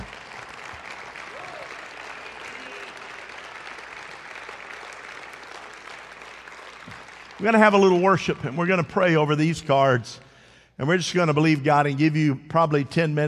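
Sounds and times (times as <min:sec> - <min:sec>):
audience clapping: 0:00.0 - 0:09.1
speech: 0:07.4 - 0:10.2, 0:10.8 - 0:13.2.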